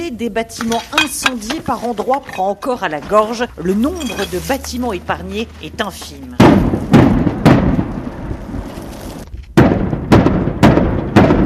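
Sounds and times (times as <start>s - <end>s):
speech: 0.1s - 6.3s
combat sounds several kilometres away: 4.9s - 11.4s.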